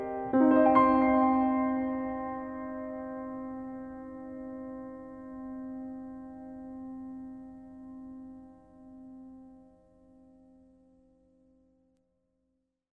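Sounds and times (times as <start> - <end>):
solo piano: 0.0 - 9.8.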